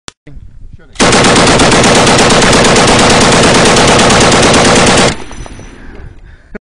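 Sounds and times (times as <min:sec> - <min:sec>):
military machine gun fire: 0:01.0 - 0:05.7.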